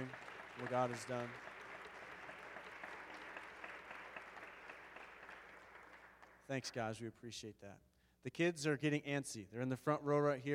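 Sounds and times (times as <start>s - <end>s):
speech: 0.0s - 1.5s, 6.5s - 10.5s
audience round of applause: 0.0s - 6.4s.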